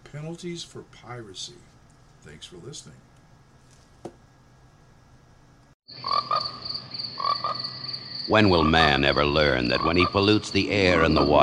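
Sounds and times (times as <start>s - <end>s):
speech: 0.1s - 3.1s, 8.3s - 11.4s
frogs croaking and trilling: 5.9s - 11.4s.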